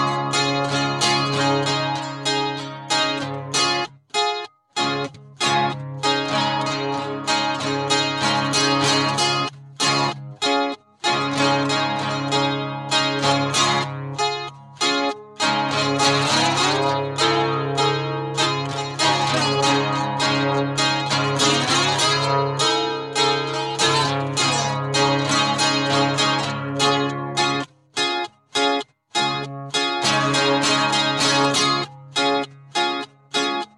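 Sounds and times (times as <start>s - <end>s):
acoustic guitar: 0.0s - 33.7s.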